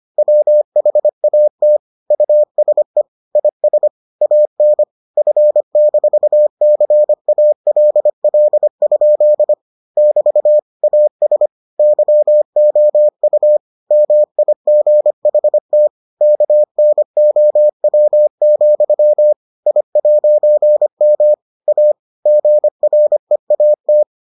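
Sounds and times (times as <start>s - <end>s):
morse code beeps: 0.2s - 24.3s.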